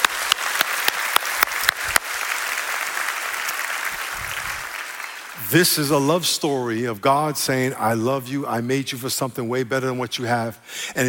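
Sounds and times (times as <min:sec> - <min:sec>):
crowd applause: 0:00.0 - 0:06.0
speech: 0:05.5 - 0:11.0.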